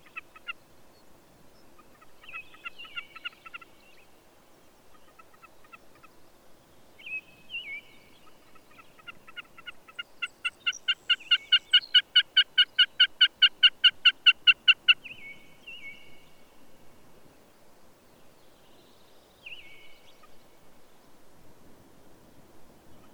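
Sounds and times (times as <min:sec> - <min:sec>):
bird song of trilled phrases and rising slurred whistles: 0:01.6 - 0:04.2, 0:07.0 - 0:13.6, 0:14.4 - 0:16.5, 0:18.2 - 0:20.6.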